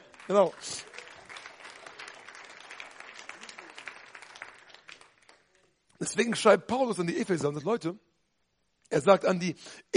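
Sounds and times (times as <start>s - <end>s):
audience clapping: 0.0s - 6.3s
speech: 0.3s - 1.0s, 6.0s - 8.1s, 8.9s - 9.9s.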